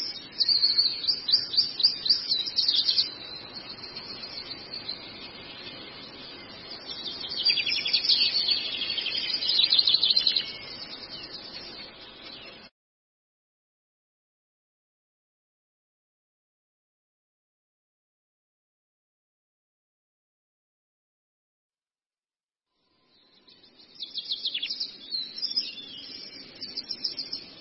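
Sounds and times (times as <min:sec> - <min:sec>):
Long-tailed shrike twittering song: 0:00.0 - 0:12.7, 0:22.8 - 0:27.5.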